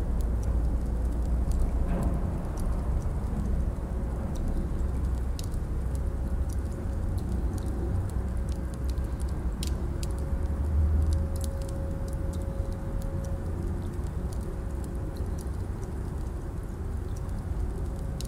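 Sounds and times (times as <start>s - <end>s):
castle ambience: 0.0s - 18.2s.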